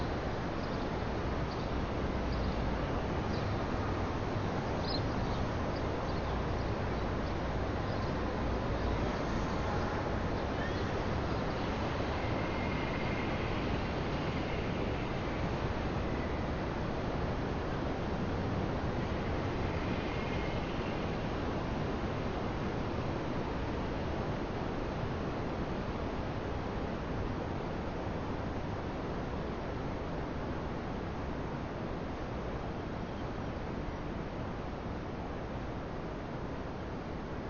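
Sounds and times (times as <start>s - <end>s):
city ambience: 0.0s - 37.4s.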